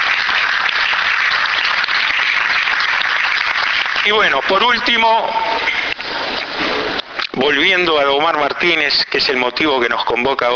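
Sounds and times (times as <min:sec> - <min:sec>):
audience applause: 0:00.0 - 0:06.9
speech: 0:04.0 - 0:05.8, 0:07.4 - 0:10.5.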